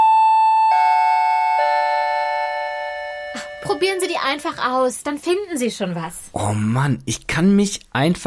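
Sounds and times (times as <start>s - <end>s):
doorbell ringing: 0.0s - 4.2s
speech: 3.8s - 8.2s.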